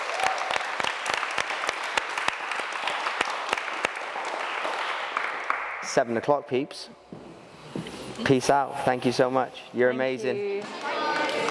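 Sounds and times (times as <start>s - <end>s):
audience clapping to thank a speaker: 0.0s - 6.3s, 10.6s - 11.4s
speech: 5.9s - 7.1s, 8.2s - 10.8s.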